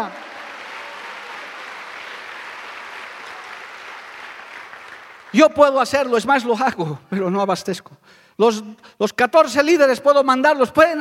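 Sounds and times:
audience applauding: 0.0s - 5.8s
speech: 5.3s - 11.0s.

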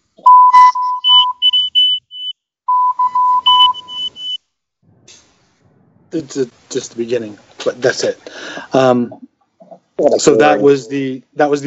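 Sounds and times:
Morse code beeps: 0.2s - 4.4s
speech: 6.1s - 9.2s, 10.0s - 11.6s.

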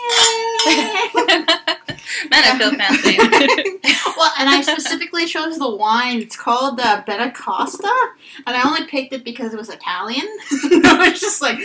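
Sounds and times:
wine glasses clinking in a toast: 0.0s - 1.2s
people giggling and laughing: 0.5s - 5.0s, 10.4s - 11.6s
speech: 0.6s - 1.6s, 2.4s - 11.6s.

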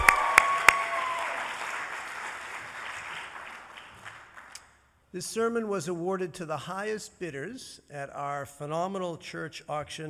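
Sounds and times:
audience applause: 0.0s - 4.6s
speech: 5.2s - 10.0s.

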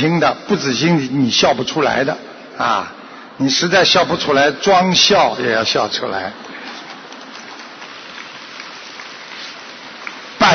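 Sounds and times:
speech: 0.0s - 6.5s
audience applause: 6.6s - 10.5s.

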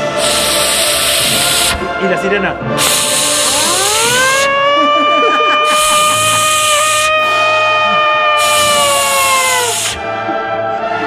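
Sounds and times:
dry ice fog machine hissing: 0.0s - 1.8s, 2.7s - 10.1s
speech: 2.0s - 3.2s
laughter: 4.5s - 6.9s, 10.1s - 11.0s.

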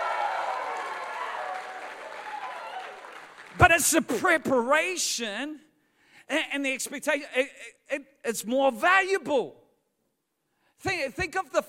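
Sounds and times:
audience clapping in praise: 0.0s - 4.0s
speech: 3.6s - 5.7s, 6.3s - 9.6s, 10.8s - 11.6s.

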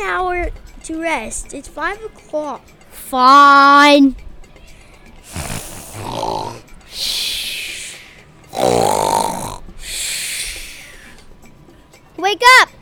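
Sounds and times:
speech: 0.0s - 4.2s, 6.5s - 7.2s, 12.3s - 12.8s
voice imitating snoring: 5.2s - 7.2s, 8.5s - 10.0s.

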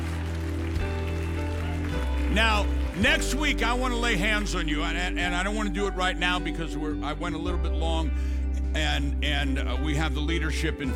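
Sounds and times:
audience clapping: 0.0s - 4.9s
speech: 2.3s - 10.9s.

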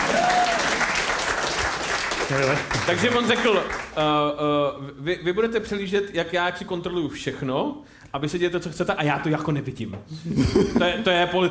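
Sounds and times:
audience applause: 0.0s - 4.0s
speech: 2.3s - 11.5s
laughter: 10.2s - 11.1s.

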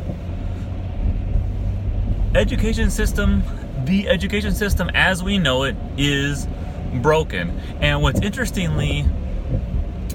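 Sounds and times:
car engine and road rumble on the drive home: 0.0s - 10.1s
speech: 2.4s - 9.2s.

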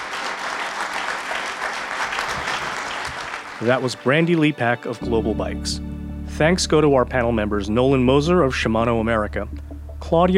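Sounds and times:
audience applause for panel: 0.0s - 4.6s
speech: 3.6s - 10.3s.

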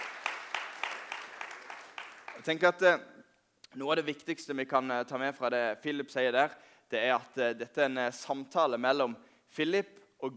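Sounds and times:
applause: 0.0s - 2.7s
speech: 2.4s - 3.1s, 3.7s - 10.3s.

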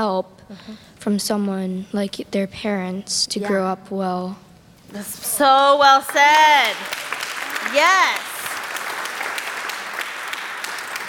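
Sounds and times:
speech: 0.0s - 7.0s, 7.6s - 8.3s
audience clapping: 5.4s - 11.0s.

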